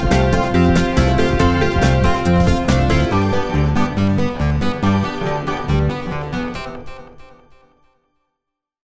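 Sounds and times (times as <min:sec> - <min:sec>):
antisocial strumming: 0:00.0 - 0:07.1.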